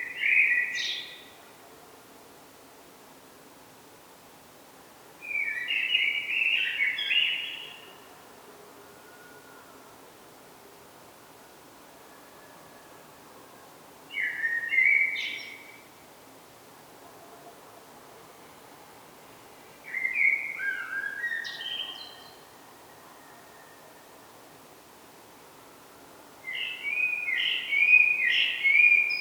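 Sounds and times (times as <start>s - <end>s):
common blackbird song: 0.0s - 1.4s, 5.2s - 8.1s, 14.1s - 15.9s, 19.9s - 22.5s, 26.4s - 29.1s.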